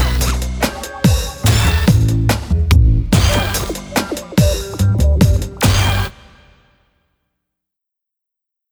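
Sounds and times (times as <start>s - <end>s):
eighth note groove without guide flute: 0.0s - 6.4s.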